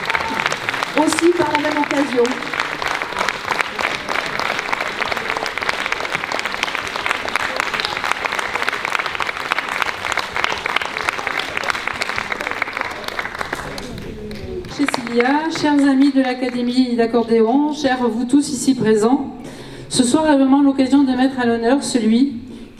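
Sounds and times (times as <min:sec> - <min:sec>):
audience applause: 0:00.0 - 0:16.1
speech: 0:01.0 - 0:02.6, 0:15.2 - 0:19.3, 0:20.0 - 0:22.4.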